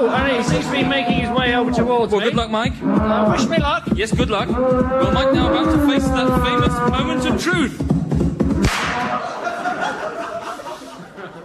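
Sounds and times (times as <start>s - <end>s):
speech: 0.0s - 8.0s
gun going off as a man faces a bull: 8.6s - 9.2s
laughter: 8.9s - 11.4s.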